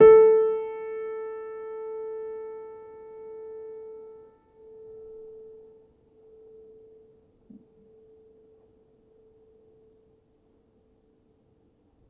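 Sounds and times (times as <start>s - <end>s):
upright piano: 0.0s - 5.7s.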